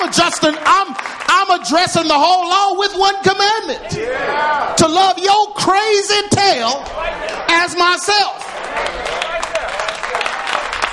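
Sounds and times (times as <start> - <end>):
audience clapping: 0.0 - 2.8, 8.3 - 10.9
speech: 0.1 - 9.5.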